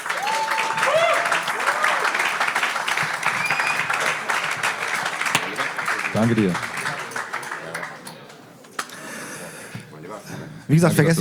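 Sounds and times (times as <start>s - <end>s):
whoops and cheers: 0.0s - 2.5s, 3.3s - 4.0s
crowd applause: 0.0s - 9.4s
speech: 6.2s - 6.7s, 10.7s - 11.1s.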